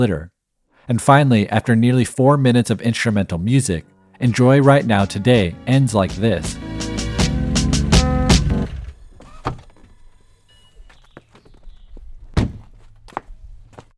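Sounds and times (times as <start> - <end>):
speech: 0.0 - 0.3, 0.9 - 6.7
sports car engine cutting off: 6.5 - 9.3.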